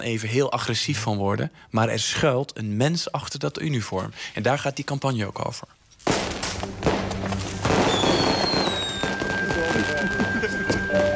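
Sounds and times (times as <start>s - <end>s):
speech: 0.0s - 5.8s
New Year's Eve fireworks bangs and pops: 6.0s - 11.1s
whistling rockets sliding down in pitch: 6.1s - 11.1s
long steady whistle: 8.0s - 11.1s.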